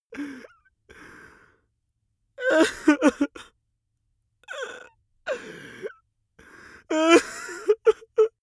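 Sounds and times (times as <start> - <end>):
man crying: 2.4 - 3.4, 6.9 - 8.3.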